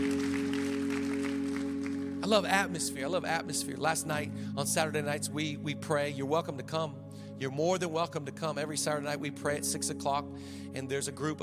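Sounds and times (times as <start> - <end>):
audience clapping: 0.0 - 2.3
speech: 2.3 - 11.4.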